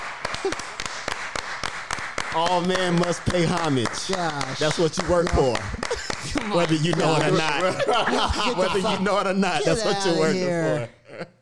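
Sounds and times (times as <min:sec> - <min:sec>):
hand clapping: 0:00.0 - 0:08.3
speech: 0:00.4 - 0:00.8, 0:02.3 - 0:11.3
laughter: 0:04.6 - 0:11.4.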